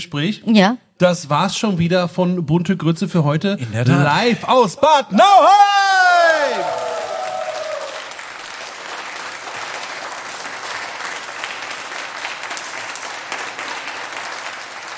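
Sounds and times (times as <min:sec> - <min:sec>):
speech: 0:00.0 - 0:06.8
live audience applause: 0:06.1 - 0:14.9.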